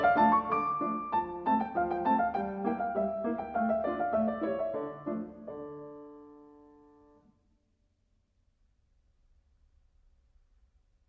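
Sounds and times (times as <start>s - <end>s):
piano polka in D minor: 0.0s - 7.2s.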